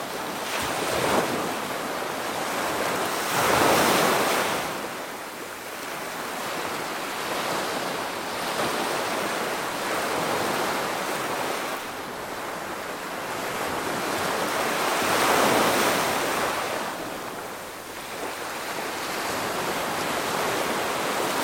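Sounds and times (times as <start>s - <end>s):
medium waves in the ocean: 0.0s - 21.4s.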